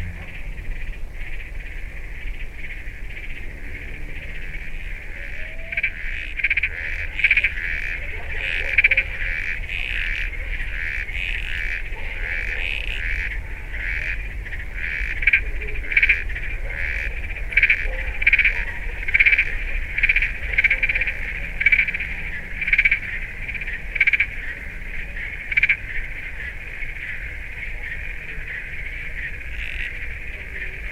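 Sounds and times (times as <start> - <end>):
wetland soundscape in Chile: 0.0 - 30.9.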